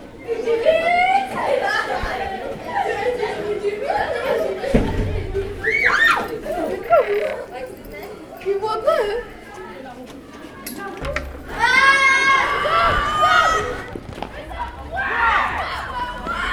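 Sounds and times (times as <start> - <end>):
pupils shouting and chattering in a school corridor: 0.0 - 16.5
laughter: 0.1 - 9.4, 11.2 - 13.9.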